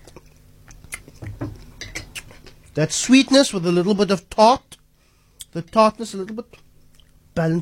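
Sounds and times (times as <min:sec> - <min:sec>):
chewing granadilla passion fruit pulp with crunchy pips: 0:00.0 - 0:02.8
speech: 0:02.8 - 0:04.7, 0:05.5 - 0:06.7, 0:07.4 - 0:07.6.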